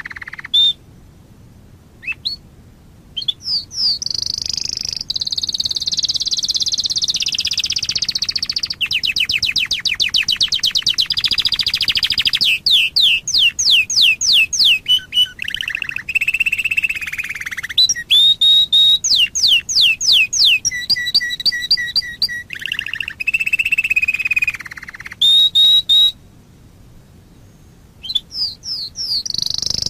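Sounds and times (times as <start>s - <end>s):
Waterslager canary song: 0.0s - 0.9s, 2.0s - 2.5s, 3.2s - 29.8s.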